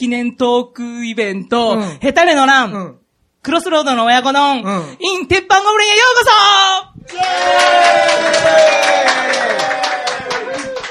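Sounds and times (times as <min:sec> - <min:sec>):
speech: 0:00.0 - 0:09.8
audience cheering at a live anniversary talk event: 0:07.1 - 0:10.8.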